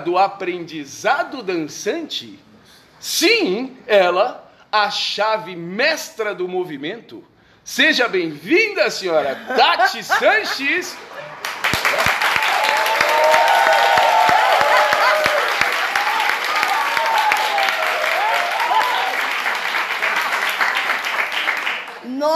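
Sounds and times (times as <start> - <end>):
speech: 0.0 - 11.3, 22.2 - 22.3
laughter: 9.2 - 11.7, 14.4 - 16.6
applause sound effect, distorted: 11.0 - 22.0.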